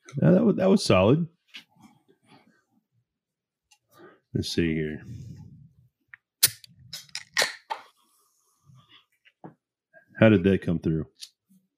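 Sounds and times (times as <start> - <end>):
speech: 0.2 - 1.4, 4.4 - 5.3, 10.2 - 11.2
drink can cracked open with fizzing: 6.4 - 7.8.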